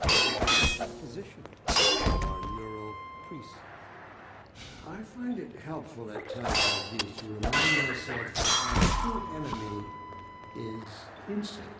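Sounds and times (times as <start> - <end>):
video game crowbar clanging on metal: 1.7 - 2.8, 6.4 - 9.8
voices talking: 2.0 - 11.7.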